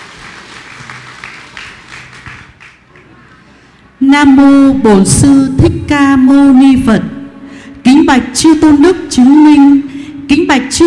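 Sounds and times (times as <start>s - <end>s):
applause: 0.0s - 3.2s
speech: 4.1s - 7.1s, 8.1s - 10.8s.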